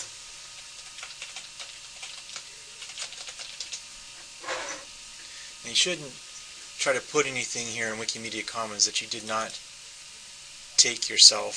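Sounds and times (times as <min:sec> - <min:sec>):
typing on a computer keyboard: 0:00.8 - 0:03.8
steady hiss: 0:03.7 - 0:11.5
speech: 0:05.6 - 0:09.7, 0:10.8 - 0:11.5.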